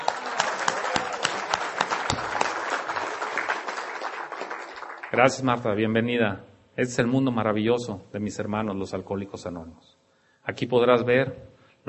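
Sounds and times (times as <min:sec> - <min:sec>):
audience applause: 0:00.0 - 0:05.4
speech: 0:05.1 - 0:11.8.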